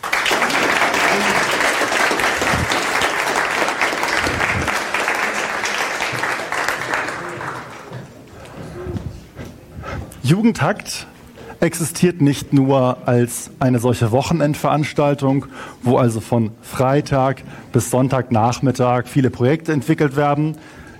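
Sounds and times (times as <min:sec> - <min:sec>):
audience applause: 0:00.0 - 0:08.2
speech: 0:10.3 - 0:20.7.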